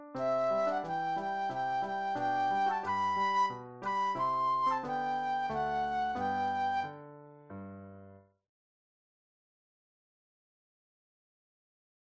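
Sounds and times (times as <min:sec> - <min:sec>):
solo flute playing classical minuet: 0:00.2 - 0:07.1.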